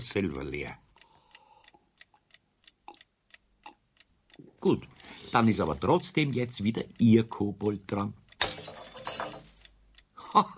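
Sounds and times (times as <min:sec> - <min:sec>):
speech: 0:00.0 - 0:00.8, 0:04.6 - 0:08.2, 0:10.4 - 0:10.5
drinking glass shattering: 0:08.4 - 0:09.8.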